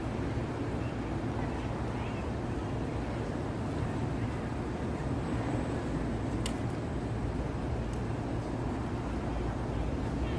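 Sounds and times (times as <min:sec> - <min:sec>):
night traffic rumble in Midtown New York City: 0:00.0 - 0:10.3
faint voices: 0:00.3 - 0:05.9, 0:08.8 - 0:10.3.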